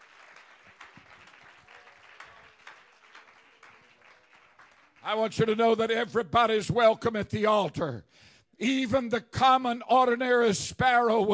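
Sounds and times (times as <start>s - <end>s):
audience clapping hands: 0.0s - 5.6s
speech: 5.0s - 11.3s.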